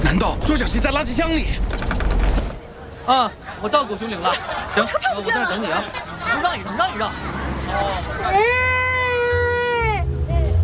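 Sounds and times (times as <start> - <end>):
speech: 0.1 - 1.8, 3.1 - 8.7
laughter: 2.8 - 9.4
baby crying: 8.2 - 10.6.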